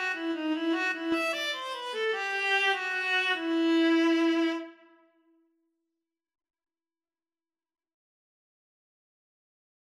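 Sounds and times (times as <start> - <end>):
viola playing a minuet: 0.0 - 5.0.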